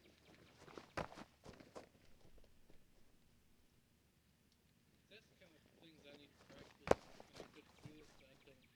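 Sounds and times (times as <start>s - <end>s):
footsteps on dirt: 0.0s - 3.6s, 6.4s - 8.5s.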